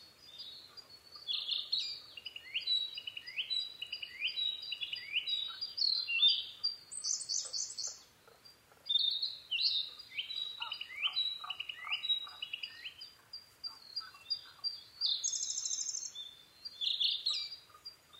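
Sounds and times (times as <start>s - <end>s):
Narcissus flycatcher singing: 0.0s - 18.1s.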